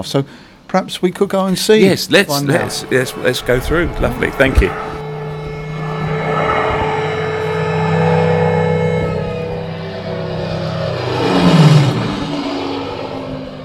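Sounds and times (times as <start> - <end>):
speech: 0.0 - 5.0
plane passing overhead sound effect: 1.8 - 13.6.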